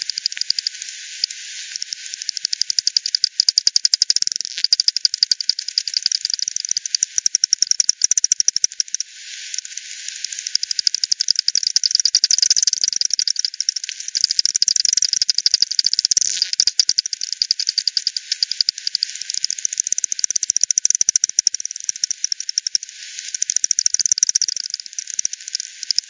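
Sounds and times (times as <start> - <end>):
faint hiss: 0.0 - 3.1, 9.0 - 10.8
bat echolocation clicks: 0.0 - 26.0.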